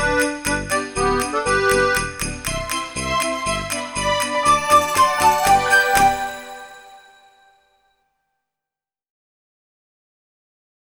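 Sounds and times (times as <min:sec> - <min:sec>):
jingle bell: 0:00.0 - 0:07.6.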